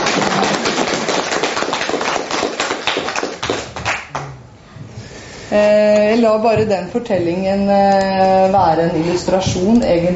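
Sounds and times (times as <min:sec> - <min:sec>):
group clapping: 0:00.0 - 0:04.4
speech: 0:05.5 - 0:10.1.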